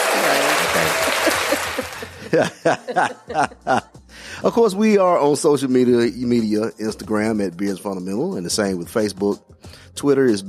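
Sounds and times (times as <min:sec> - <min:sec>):
crowd applauding: 0:00.0 - 0:02.4
laughter: 0:00.0 - 0:04.0
speech: 0:02.3 - 0:10.4.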